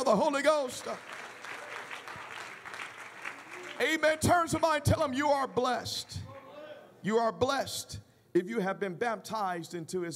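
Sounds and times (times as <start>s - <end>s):
audience clapping hands: 0.0s - 6.2s
speech: 0.1s - 1.2s, 3.8s - 6.2s, 7.0s - 10.1s.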